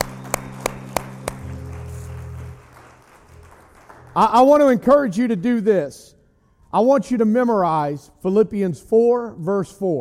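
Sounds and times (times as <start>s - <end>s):
people clapping hands: 0.0s - 5.1s
speech: 4.2s - 9.9s.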